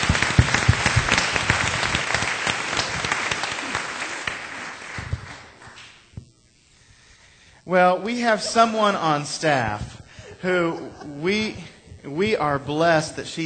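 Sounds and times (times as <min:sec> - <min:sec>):
crowd applauding: 0:00.0 - 0:06.0
speech: 0:07.7 - 0:13.4
laughter: 0:08.1 - 0:12.6.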